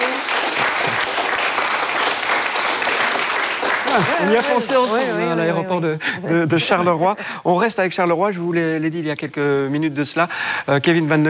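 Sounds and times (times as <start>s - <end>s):
team applauding: 0.0s - 5.7s
speech: 4.0s - 11.2s.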